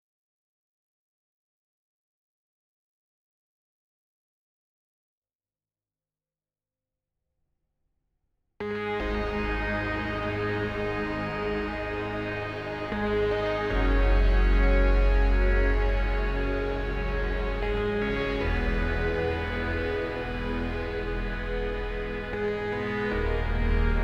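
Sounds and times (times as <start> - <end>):
synth: 8.6 - 24.0.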